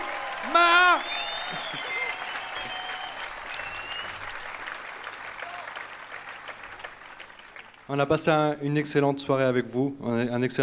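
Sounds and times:
whooping shout: 0.0s - 4.0s, 5.4s - 5.8s
audience applauding: 0.0s - 8.1s
speech: 7.9s - 10.6s.

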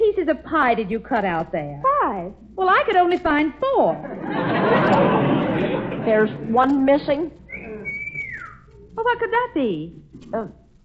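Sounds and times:
speech: 0.3s - 7.4s, 9.0s - 10.6s
laughter: 4.0s - 6.7s
whistle: 7.5s - 8.8s.

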